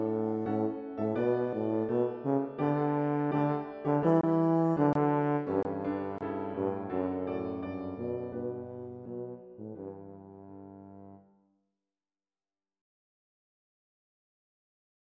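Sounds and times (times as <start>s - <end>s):
piano: 0.0s - 11.3s
tuba: 0.0s - 11.3s.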